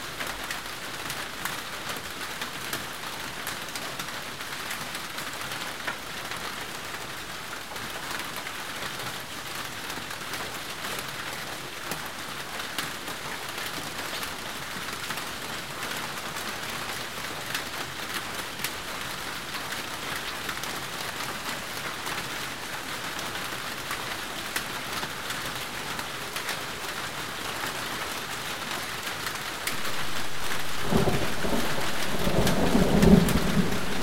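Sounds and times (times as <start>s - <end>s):
rain: 0.0s - 34.0s
thunder: 29.6s - 34.0s.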